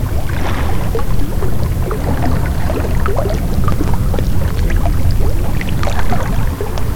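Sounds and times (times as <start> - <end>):
water: 0.0 - 6.9.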